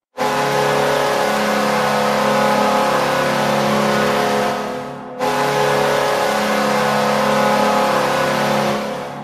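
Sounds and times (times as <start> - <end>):
goal horn: 0.2 - 9.2.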